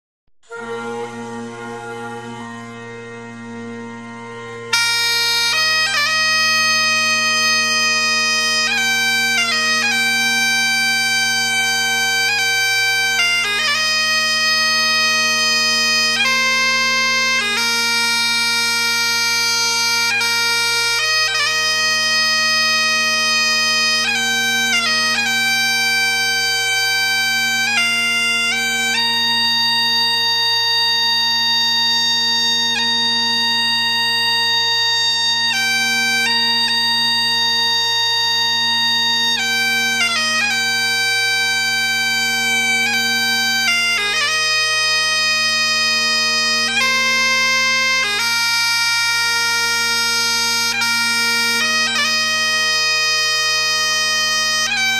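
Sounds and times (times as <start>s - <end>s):
kilted music: 0.4s - 54.9s.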